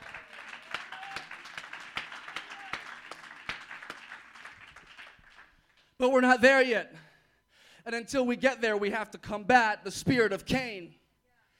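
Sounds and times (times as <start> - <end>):
audience clapping hands: 0.0 - 6.0
speech: 6.0 - 7.0, 7.9 - 11.0.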